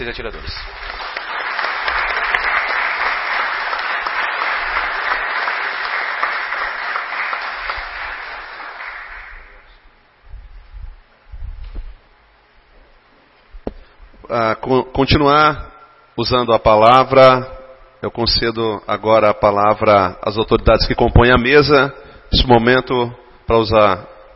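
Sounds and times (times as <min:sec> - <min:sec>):
speech: 0:00.0 - 0:01.0, 0:14.3 - 0:24.1
audience applause: 0:00.0 - 0:09.6.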